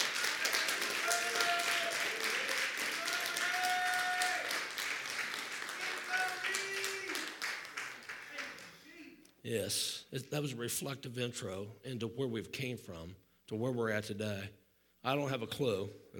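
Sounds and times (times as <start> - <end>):
audience clapping hands: 0.0 - 9.1
speech: 9.4 - 16.1.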